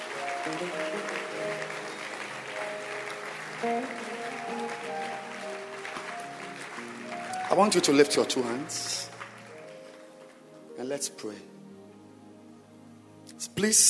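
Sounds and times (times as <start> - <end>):
audience clapping: 0.0 - 10.6
speech: 0.4 - 1.6, 3.6 - 5.1, 7.5 - 9.1, 10.9 - 11.6, 13.5 - 13.8.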